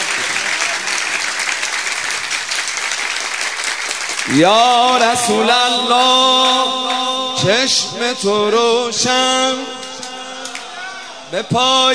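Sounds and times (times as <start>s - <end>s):
wedding guests clapping their hands: 0.0s - 11.4s
speech: 4.3s - 9.8s, 11.3s - 11.9s.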